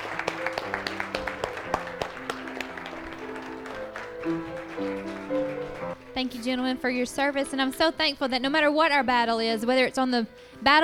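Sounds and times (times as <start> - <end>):
audience applause: 0.0 - 6.0
speech: 4.2 - 5.4, 6.2 - 10.8.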